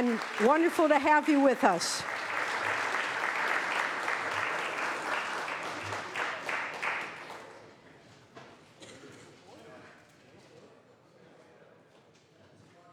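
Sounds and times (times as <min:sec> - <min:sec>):
speech: 0:00.0 - 0:02.2
audience applause: 0:00.0 - 0:07.6.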